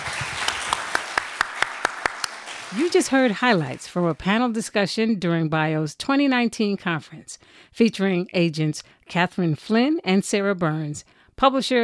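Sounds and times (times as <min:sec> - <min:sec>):
audience applause: 0:00.0 - 0:04.2
speech: 0:02.7 - 0:11.8.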